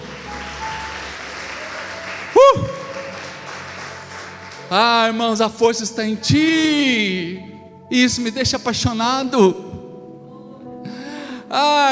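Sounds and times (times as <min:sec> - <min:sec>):
audience applause: 0:00.0 - 0:04.8
speech: 0:04.7 - 0:09.6, 0:11.5 - 0:11.9.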